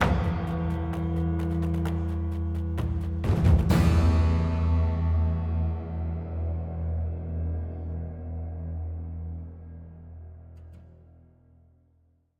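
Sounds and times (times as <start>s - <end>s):
string instrument: 0.0s - 7.9s.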